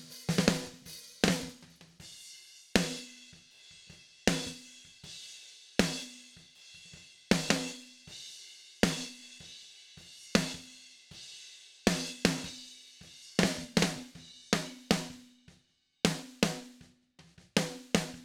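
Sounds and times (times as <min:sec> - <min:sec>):
snare drum: 0:00.0 - 0:02.0, 0:07.3 - 0:07.9, 0:10.4 - 0:10.7, 0:11.9 - 0:12.6, 0:13.4 - 0:15.3, 0:16.1 - 0:18.2.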